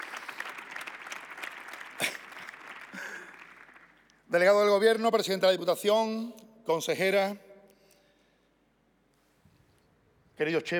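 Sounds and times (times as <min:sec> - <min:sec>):
audience applause: 0:00.0 - 0:04.1
speech: 0:04.3 - 0:07.5, 0:10.4 - 0:10.7.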